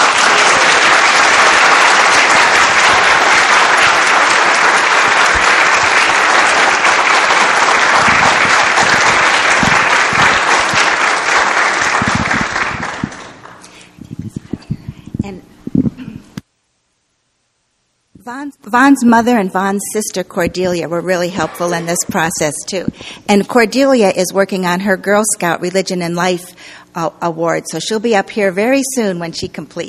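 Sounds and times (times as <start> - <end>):
audience applause: 0.0 - 13.6
speech: 18.7 - 29.8.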